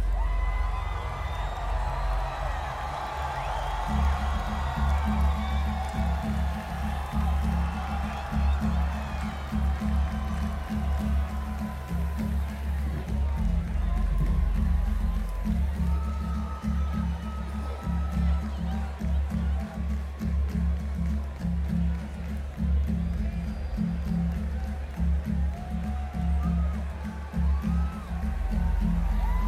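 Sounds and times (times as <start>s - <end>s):
tribal drums: 0.1s - 29.4s.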